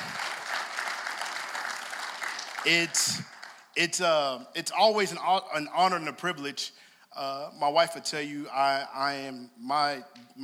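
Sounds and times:
audience clapping: 0:00.0 - 0:04.0
speech: 0:02.6 - 0:10.4.

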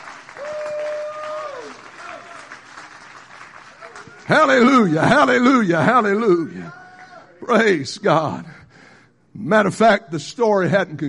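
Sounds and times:
audience clapping: 0:00.0 - 0:05.6
speech: 0:04.3 - 0:06.8, 0:07.4 - 0:08.6, 0:09.4 - 0:11.0.

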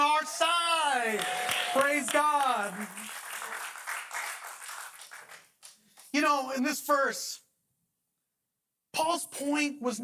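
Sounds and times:
audience clapping: 0:00.0 - 0:06.6
speech: 0:01.0 - 0:03.2, 0:06.2 - 0:07.4, 0:09.0 - 0:10.0.

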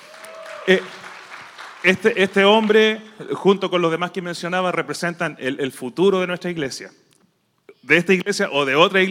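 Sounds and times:
audience applause: 0:00.0 - 0:03.0
speech: 0:00.7 - 0:01.0, 0:01.8 - 0:07.0, 0:07.8 - 0:09.0.

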